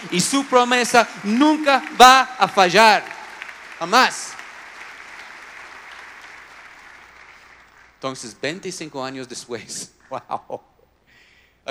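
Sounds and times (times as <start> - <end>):
speech: 0.0 - 3.2, 3.8 - 4.4, 8.0 - 10.7
loud audience applause: 0.0 - 8.0.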